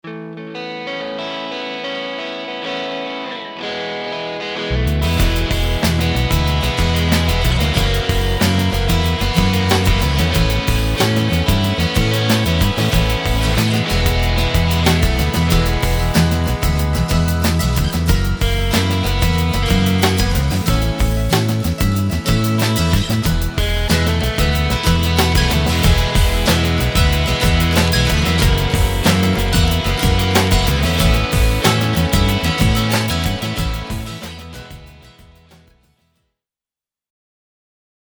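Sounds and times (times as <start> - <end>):
alternative rock music: 0.0 - 35.8.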